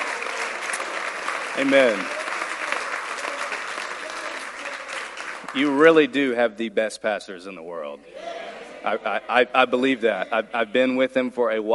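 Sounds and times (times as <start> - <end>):
audience applause: 0.0 - 6.0
speech: 1.6 - 2.2, 5.5 - 11.7.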